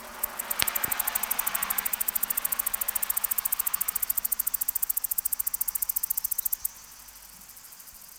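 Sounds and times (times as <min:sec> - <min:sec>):
cicada ticking song: 0:00.0 - 0:08.1.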